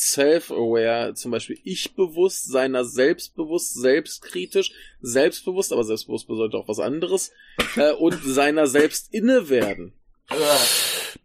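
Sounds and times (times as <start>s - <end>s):
speech: 0.1s - 10.9s
sneeze: 10.3s - 10.8s.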